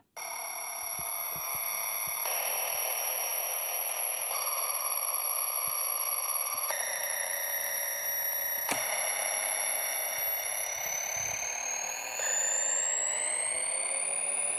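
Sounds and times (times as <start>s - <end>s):
red plastic toy keyboard playing pitched tones: 0.0s - 14.5s.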